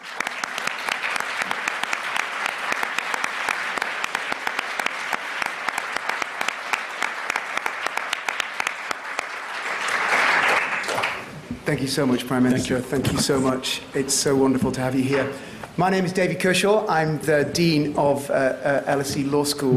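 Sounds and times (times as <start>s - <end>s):
audience applause: 0.0s - 11.4s
speech: 11.7s - 19.7s.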